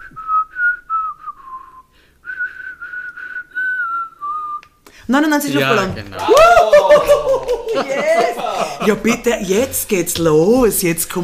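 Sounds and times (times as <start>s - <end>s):
person whistling: 0.0s - 4.8s
speech: 5.1s - 11.2s
laughter: 5.6s - 9.8s.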